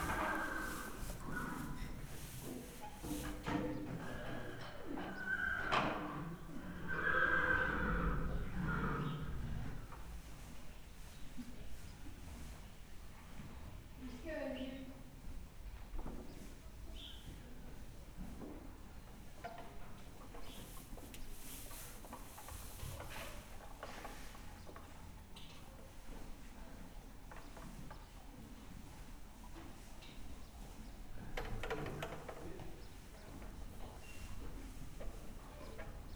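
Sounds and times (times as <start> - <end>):
horse neighing in Hortobágy National Park: 0.0 - 2.1, 4.0 - 9.9
sweeping in Hortobágy National Park: 0.0 - 2.4
background noise in Hortobágy National Park: 0.0 - 36.1.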